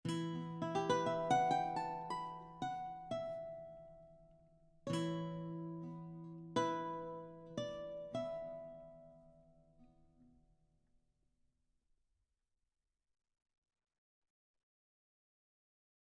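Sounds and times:
baroque guitar: 0.0s - 10.4s.

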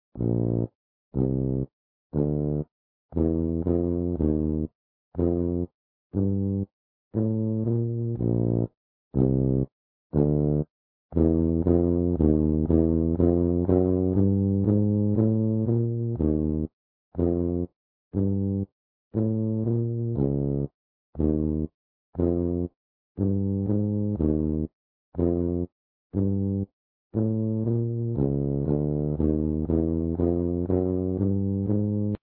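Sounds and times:
tuba: 0.1s - 32.2s.

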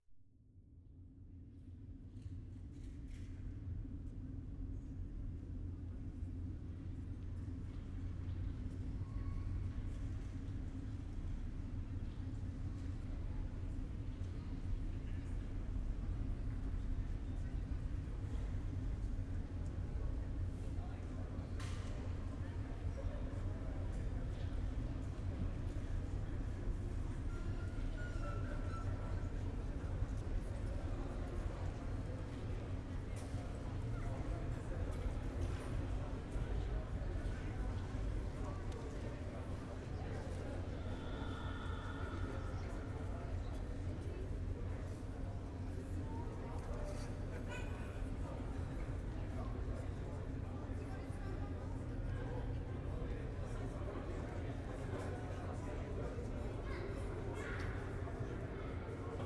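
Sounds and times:
Iron Ring public area soundscape: 0.7s - 59.2s.

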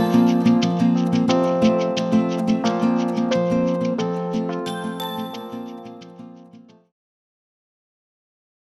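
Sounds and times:
music without drums: 0.0s - 6.8s.

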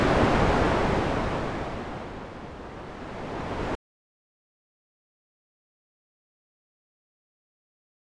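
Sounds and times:
waves: 0.0s - 3.8s.

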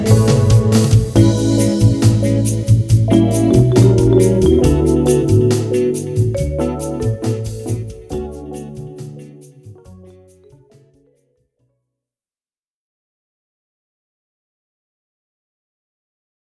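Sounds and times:
jazzy cafe music mix: 0.0s - 11.0s.

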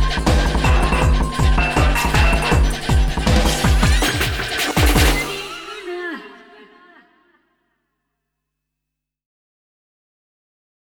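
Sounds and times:
minimal gamelan music: 0.0s - 6.6s.

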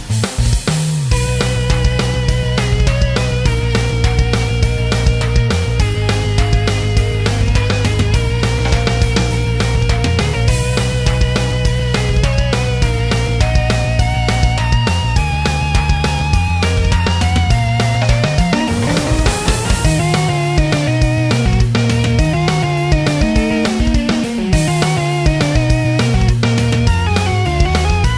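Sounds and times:
battle background music: 0.1s - 28.1s.

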